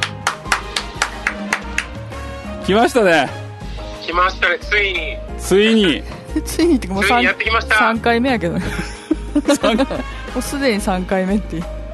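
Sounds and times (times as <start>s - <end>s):
hand clapping to welcome a guest: 0.0s - 2.0s
speech: 2.7s - 3.4s, 4.1s - 11.8s
laughter: 8.6s - 10.1s.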